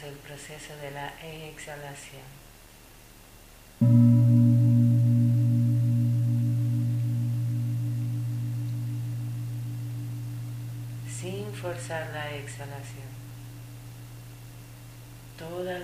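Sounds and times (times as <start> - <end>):
speech: 0.0 - 2.5, 3.8 - 4.1, 11.6 - 13.2, 15.4 - 15.8
gong stroke: 3.8 - 14.8.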